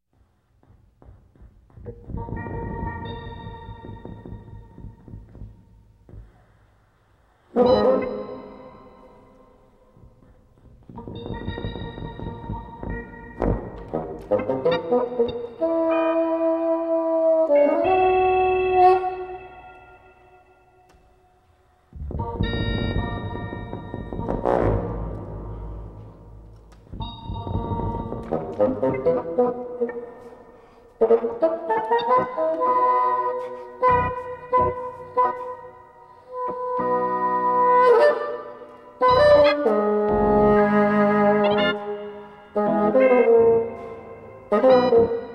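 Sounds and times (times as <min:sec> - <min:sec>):
improvised music: 0:00.6 - 0:06.8, 0:07.4 - 0:45.3.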